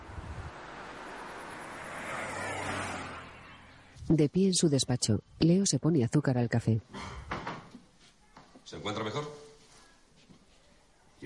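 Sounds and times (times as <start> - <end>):
car engine drone: 0.0 - 4.0
rushing road and wind noise: 0.0 - 5.4
speech: 4.1 - 7.3, 8.7 - 9.4.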